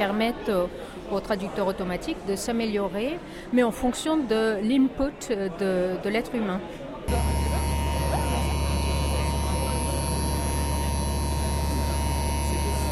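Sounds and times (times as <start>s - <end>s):
speech: 0.0s - 7.3s
electrical hum from a device for stirring cornstarch: 7.1s - 12.8s.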